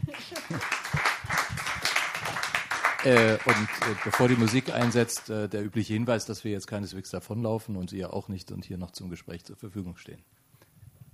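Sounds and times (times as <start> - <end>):
audience applause: 0.0 - 5.3
speech: 3.0 - 10.5.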